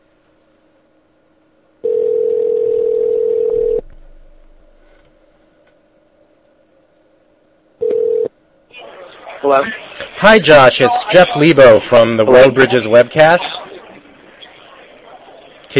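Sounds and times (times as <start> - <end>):
Skype call dialing tone: 1.8 - 3.8, 7.8 - 8.3
speech: 9.4 - 13.6.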